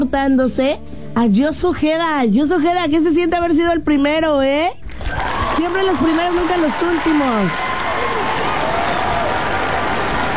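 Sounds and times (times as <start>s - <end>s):
speech: 0.0s - 7.7s
crowd applause: 4.9s - 10.3s.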